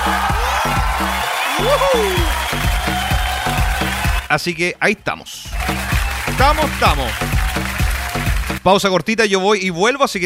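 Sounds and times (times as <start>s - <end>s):
whoops: 0.0s - 4.2s
crowd applause of welcome: 0.0s - 4.3s, 5.5s - 8.6s
punchy bass-heavy rhythmic music beat: 0.0s - 4.4s, 5.4s - 8.7s
speech: 1.6s - 2.6s, 4.3s - 7.5s, 8.6s - 10.2s.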